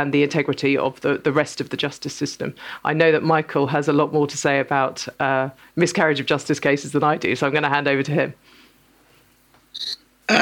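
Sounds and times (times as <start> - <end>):
speech: 0.0 - 8.6, 9.8 - 10.4
throat clearing: 9.8 - 10.4.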